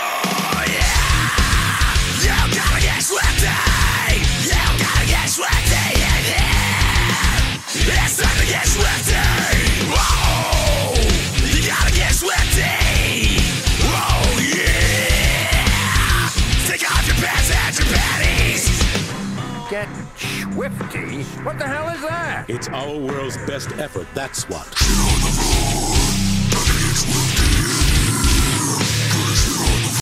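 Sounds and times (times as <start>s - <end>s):
metal music: 0.0s - 29.9s.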